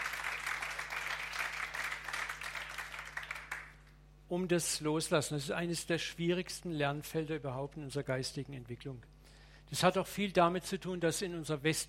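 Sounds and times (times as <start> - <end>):
audience applause: 0.0 - 3.8
speech: 4.3 - 9.1, 9.7 - 11.8.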